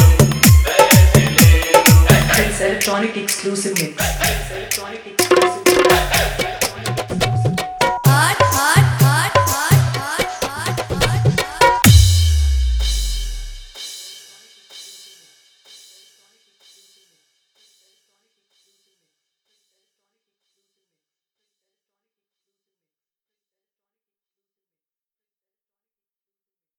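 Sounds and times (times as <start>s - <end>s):
hard dholak drumming mix: 0.0s - 16.1s.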